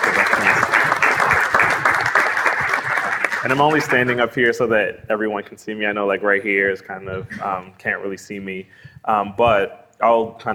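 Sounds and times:
audience applauding: 0.0 - 4.5
speech: 3.5 - 10.5.

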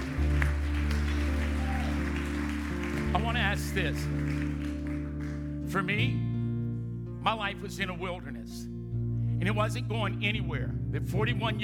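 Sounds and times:
audience clapping: 0.0 - 5.7
speech: 3.2 - 4.5, 5.7 - 6.2, 7.2 - 8.7, 9.4 - 11.6.

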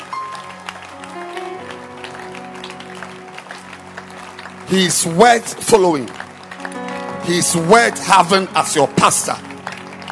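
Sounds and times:
audience clapping hands: 0.0 - 10.1
speech: 4.7 - 6.2, 7.2 - 9.5.

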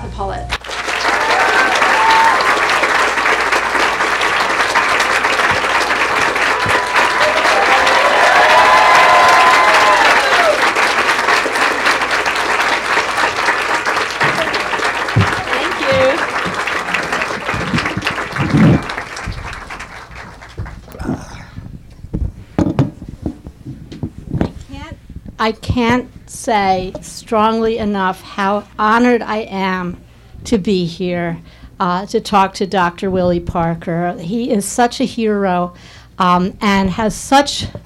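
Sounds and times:
speech: 0.1 - 0.6, 25.4 - 37.8
audience applause welcoming speakers to a stage: 0.5 - 21.0
audience cheering: 0.6 - 20.6.

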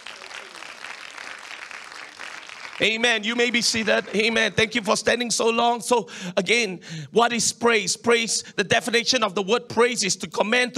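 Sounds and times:
audience applause: 0.0 - 4.8
speech: 2.8 - 10.7.

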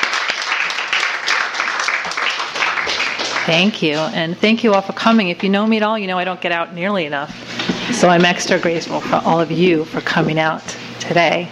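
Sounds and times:
audience applauding a poet's introduction at a poetry reading: 0.0 - 3.8
speech: 3.5 - 7.4, 8.0 - 11.5.

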